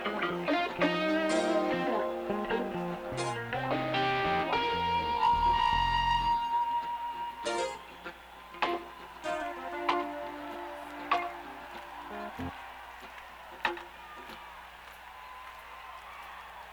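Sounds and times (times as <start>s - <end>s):
instrument tuning: 0.0s - 12.5s.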